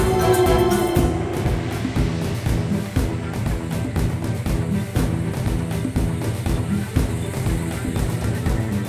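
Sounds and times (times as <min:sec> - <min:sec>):
rainforest ambience: 0:00.0 - 0:08.8.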